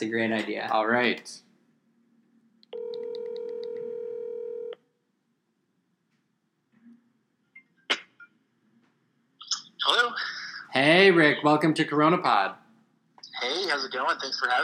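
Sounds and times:
speech: 0.0s - 1.5s, 9.8s - 12.6s, 13.4s - 14.6s
telephone tone from dialing a guest: 2.7s - 4.8s.

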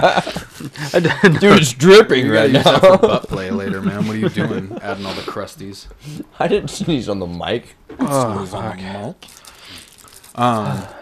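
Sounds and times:
laughter: 0.0s - 5.8s
speech: 0.0s - 9.4s, 10.4s - 11.0s
food wrapper being crinkled: 9.2s - 10.9s.

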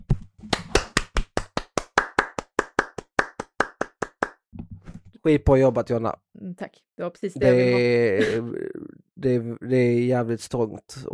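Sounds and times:
hand clapping applause: 0.5s - 4.4s
speech: 5.2s - 11.1s.

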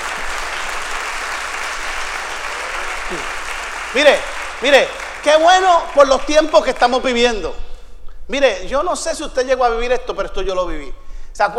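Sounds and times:
audience applause: 0.0s - 7.2s
speech: 3.1s - 3.3s, 3.9s - 7.6s, 8.3s - 11.5s.

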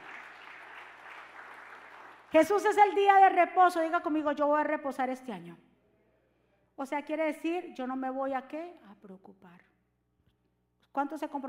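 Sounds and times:
audience applause: 0.0s - 2.3s
speech: 2.3s - 5.7s, 6.8s - 9.7s, 10.9s - 11.4s.

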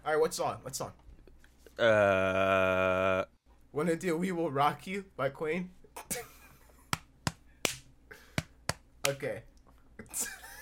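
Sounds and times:
speech: 0.1s - 1.0s, 1.8s - 6.2s, 9.1s - 10.4s
single hand clap: 6.9s - 9.2s.

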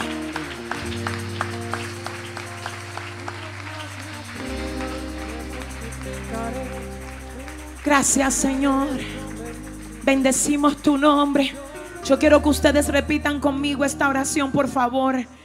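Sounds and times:
audience applauding: 0.0s - 12.2s
speech: 7.9s - 9.2s, 10.1s - 15.4s.

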